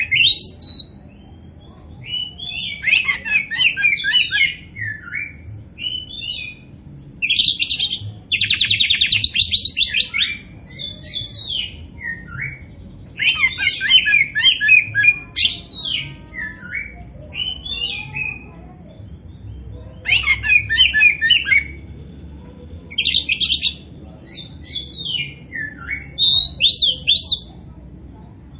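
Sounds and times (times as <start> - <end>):
Oriental magpie-robin song: 0.0 - 1.2, 2.0 - 18.4, 20.0 - 21.8, 22.9 - 27.5.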